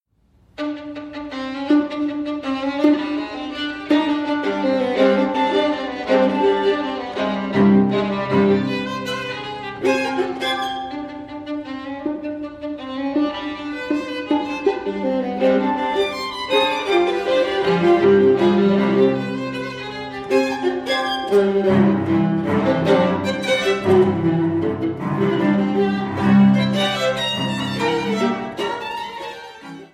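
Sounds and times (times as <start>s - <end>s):
string quartet playing an allegro assai: 0.5s - 29.9s.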